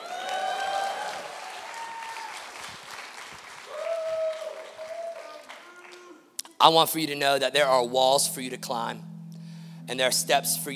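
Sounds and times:
audience cheering and applause: 0.0s - 6.2s
speech: 6.6s - 9.1s, 9.9s - 10.7s.

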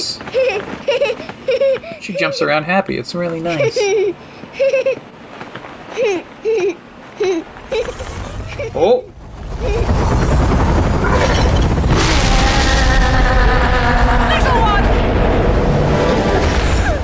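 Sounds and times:
speech: 1.9s - 5.1s, 6.0s - 10.4s
laughter: 3.4s - 5.0s
video game explosions rolling across an airfield: 9.2s - 17.0s.

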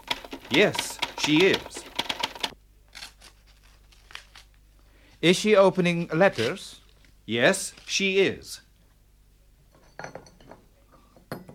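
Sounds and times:
speech: 0.5s - 1.8s, 5.2s - 8.6s
cups and spoon clinking while making tea: 9.8s - 11.5s.

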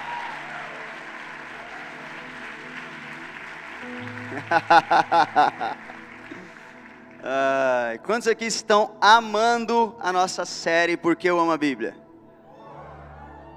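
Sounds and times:
audience applause: 0.0s - 8.0s
speech: 3.8s - 5.9s, 7.2s - 12.0s
laughter: 4.0s - 6.6s, 12.5s - 13.5s.

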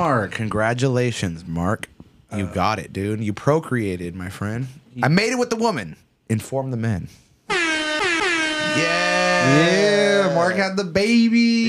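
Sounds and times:
speech: 0.0s - 7.2s, 8.7s - 11.6s
air horn blaring: 7.5s - 9.9s.

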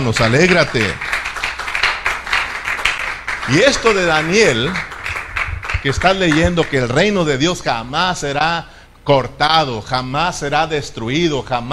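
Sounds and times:
speech: 0.0s - 1.2s, 3.5s - 4.9s, 5.8s - 11.7s
audience applause: 0.0s - 7.0s.

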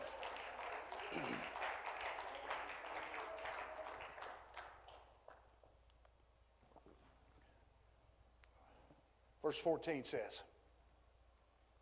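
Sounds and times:
audience clapping hands: 0.0s - 5.8s
speech: 1.1s - 1.6s, 9.5s - 10.5s.

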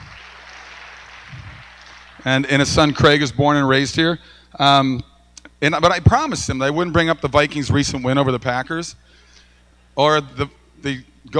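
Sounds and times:
audience applause: 0.0s - 2.4s
speech: 2.2s - 9.2s, 10.0s - 11.3s.

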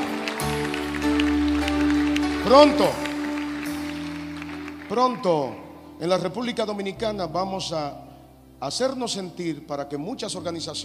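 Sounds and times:
audience applause: 0.0s - 5.6s
sustained low keyboard chords: 0.0s - 10.8s
speech: 2.5s - 3.0s, 4.9s - 8.0s, 8.6s - 10.8s.

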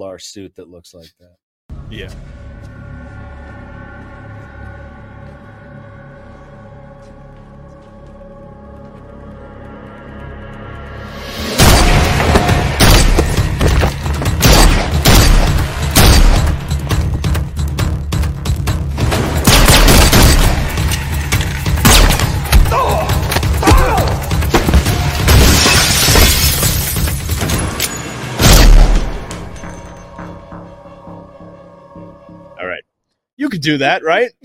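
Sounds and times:
speech: 0.0s - 2.7s, 33.6s - 34.4s
booming rumbling movie score: 1.7s - 32.7s
movie gunshots: 11.6s - 16.6s, 19.0s - 22.8s
glass shattering: 25.3s - 28.0s.

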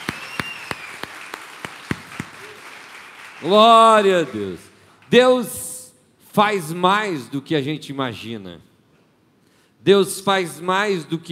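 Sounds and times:
audience applause: 0.0s - 4.6s
speech: 3.4s - 5.7s, 6.4s - 8.7s, 9.8s - 11.3s.

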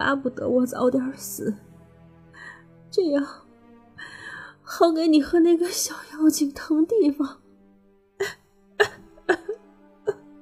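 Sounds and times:
speech: 0.0s - 1.7s, 2.4s - 3.4s, 4.7s - 7.4s
woman coughing violently: 8.2s - 10.2s.

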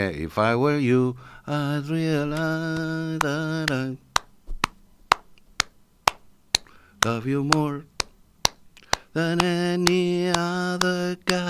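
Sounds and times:
speech: 0.0s - 4.1s, 7.0s - 7.9s, 9.2s - 11.4s
rhythmic handclaps in a song: 2.3s - 11.4s.

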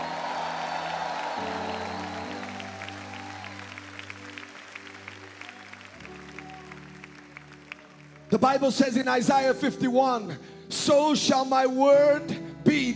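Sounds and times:
audience shouting praise and applauding: 0.0s - 9.1s
sustained keyboard chords: 0.0s - 12.9s
speech: 8.4s - 12.9s.

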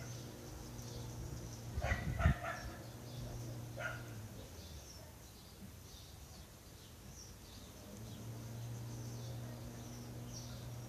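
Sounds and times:
low steady city hum: 0.0s - 10.8s
dog barking: 1.8s - 4.2s.

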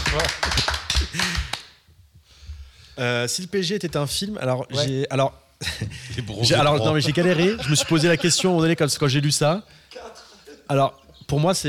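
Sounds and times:
applause from a few people: 0.0s - 1.8s
speech: 0.1s - 1.5s, 3.0s - 11.6s
people laughing: 5.6s - 9.0s.

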